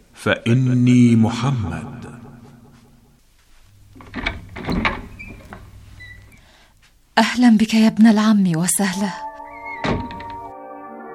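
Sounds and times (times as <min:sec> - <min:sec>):
speech: 0:00.2 - 0:02.1, 0:07.2 - 0:09.3
door being opened with wooden clunks and creaks: 0:03.9 - 0:06.4, 0:09.5 - 0:10.5.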